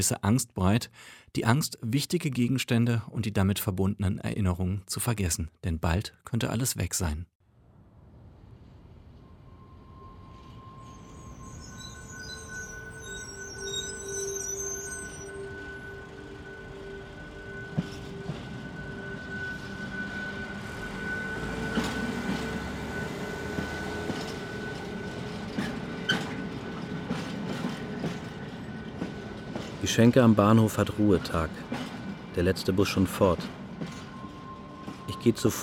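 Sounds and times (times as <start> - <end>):
speech: 0.0 - 7.4, 30.0 - 31.8, 32.4 - 33.6, 35.2 - 35.6
train at a railway station: 7.5 - 35.6.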